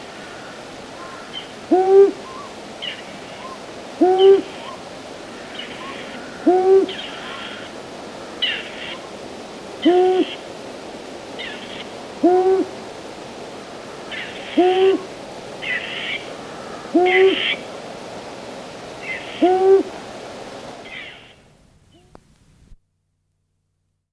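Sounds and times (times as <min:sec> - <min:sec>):
owl hooting: 0:01.0 - 0:07.8, 0:09.8 - 0:10.5, 0:11.4 - 0:12.8, 0:14.1 - 0:17.6, 0:19.0 - 0:20.0, 0:20.8 - 0:22.2.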